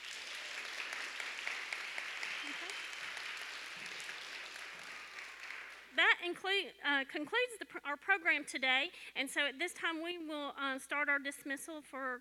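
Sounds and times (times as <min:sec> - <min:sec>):
audience applause: 0:00.0 - 0:05.9
speech: 0:06.2 - 0:12.1.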